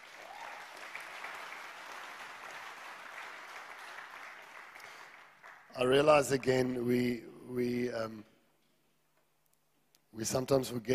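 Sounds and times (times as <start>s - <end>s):
audience clapping: 0.0s - 6.7s
speech: 5.8s - 8.3s, 10.2s - 10.9s.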